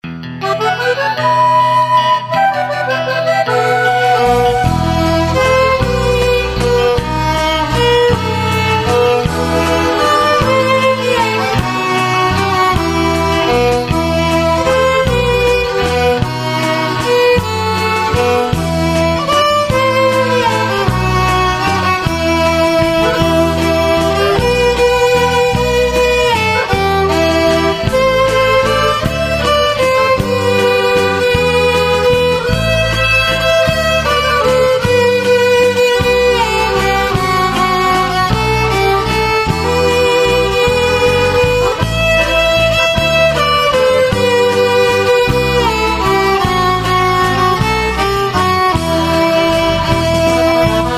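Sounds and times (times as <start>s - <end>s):
Carpathian waltz music: 0.4s - 50.9s.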